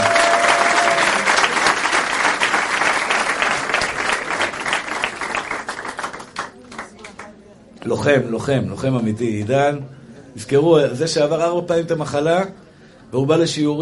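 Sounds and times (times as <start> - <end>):
audience applause: 0.0 - 7.2
speech: 7.9 - 13.8.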